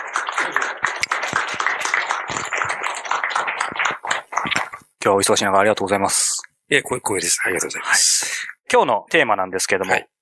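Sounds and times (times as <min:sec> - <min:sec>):
audience applause welcoming a guest: 0:00.0 - 0:04.8
speech: 0:05.0 - 0:10.2.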